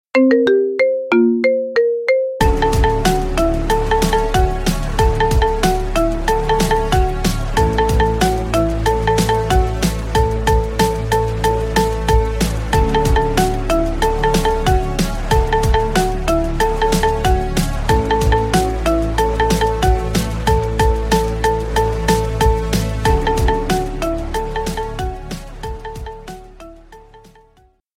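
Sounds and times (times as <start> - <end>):
marimba remix: 0.1 - 27.7.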